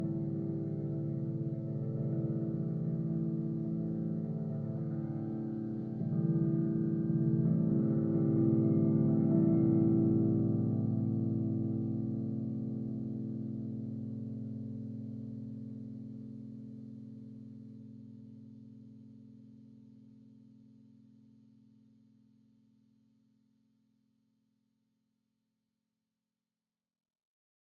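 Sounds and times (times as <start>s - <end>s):
amped overdriven electric pentatonic murmuring oceanic tones: 0.0s - 17.0s.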